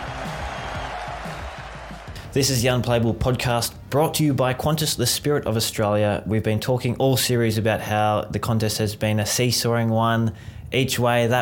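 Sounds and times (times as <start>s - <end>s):
large cricket stadium crowd roaring and applauding: 0.0s - 2.8s
speech: 2.3s - 11.4s.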